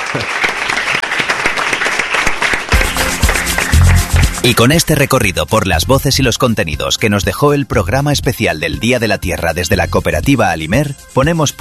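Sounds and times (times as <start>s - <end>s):
audience applause: 0.0s - 5.0s
speech: 4.4s - 11.5s.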